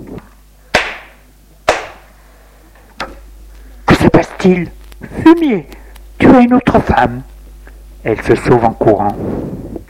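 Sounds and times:
woman slapping a man across the face: 0.8 - 2.0
speech: 4.2 - 7.3, 8.0 - 9.6.

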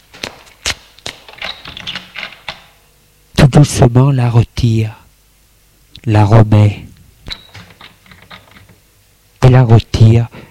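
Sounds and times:
hand on a door handle: 1.3 - 2.7, 7.3 - 8.7
speech: 3.6 - 5.0, 6.0 - 6.9, 9.5 - 10.4.

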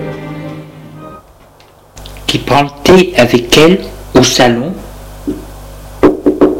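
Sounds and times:
speech: 2.5 - 4.7
knocking on a door: 6.0 - 6.5.

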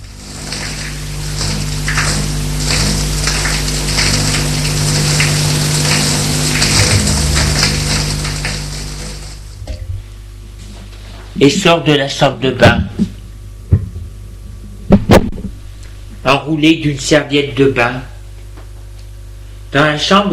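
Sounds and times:
shower water running: 0.0 - 11.8
speech: 11.4 - 13.2, 16.3 - 18.1, 19.7 - 20.3.

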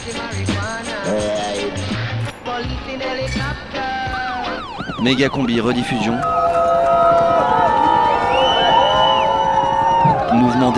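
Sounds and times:
speech: 0.0 - 1.8, 2.6 - 7.2, 10.4 - 10.7
crowd doing a wave cheer for the arrival of a helicopter: 5.9 - 10.7.

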